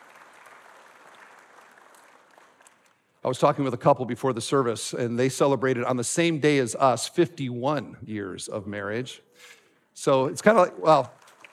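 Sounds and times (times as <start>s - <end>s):
audience clapping: 0.0s - 3.1s, 10.4s - 11.5s
speech: 3.2s - 11.2s.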